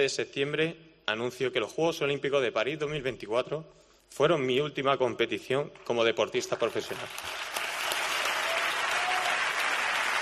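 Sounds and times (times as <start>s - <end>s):
speech: 0.0s - 7.6s
crowd applause: 7.0s - 10.2s.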